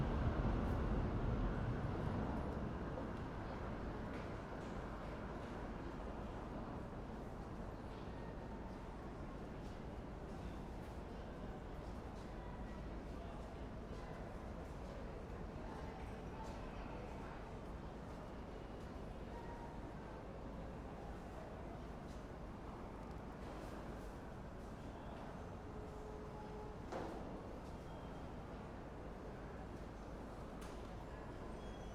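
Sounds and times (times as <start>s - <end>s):
subway station ambience in New York City: 0.0s - 31.9s.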